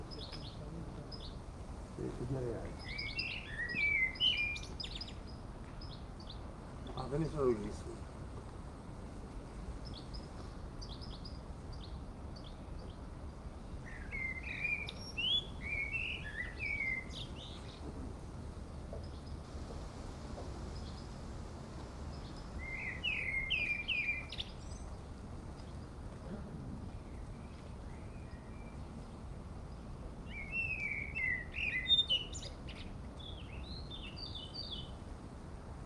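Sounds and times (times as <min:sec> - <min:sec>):
birds on a mountain top in Erice, Sicily, Italy: 0:00.0 - 0:35.8
wind on the top of a mountain in Erice, Sicily, Italy: 0:00.0 - 0:35.8
people chatting briefly on a mountain top in Erice, Sicily, Italy: 0:02.0 - 0:02.8, 0:06.9 - 0:08.0.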